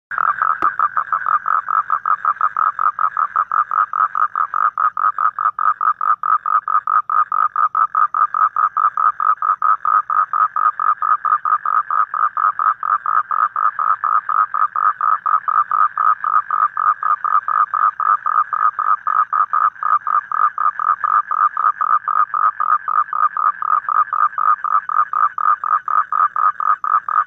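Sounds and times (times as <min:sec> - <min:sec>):
toad croaking: 0:00.1 - 0:27.2.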